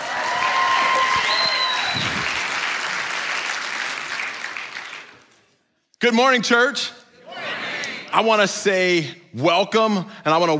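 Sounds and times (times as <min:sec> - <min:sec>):
church congregation applauding during a morning service: 0:00.0 - 0:05.4
speech: 0:06.0 - 0:07.0, 0:08.2 - 0:10.5.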